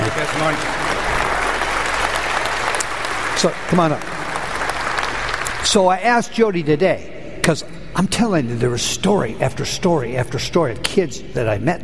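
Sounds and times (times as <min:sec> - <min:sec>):
audience applause: 0:00.0 - 0:05.8
speech: 0:00.3 - 0:00.9, 0:03.4 - 0:04.2, 0:05.6 - 0:11.8.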